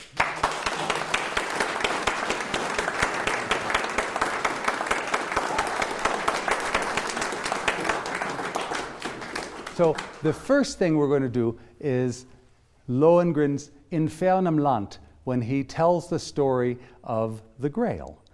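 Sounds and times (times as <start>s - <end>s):
audience applause welcoming a singer at an opera evening: 0.0s - 10.4s
speech: 9.8s - 18.2s.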